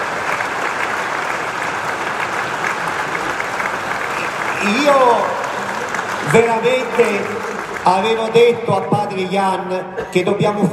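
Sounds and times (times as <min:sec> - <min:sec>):
audience applause: 0:00.0 - 0:09.3
speech: 0:04.6 - 0:05.4, 0:06.3 - 0:10.7.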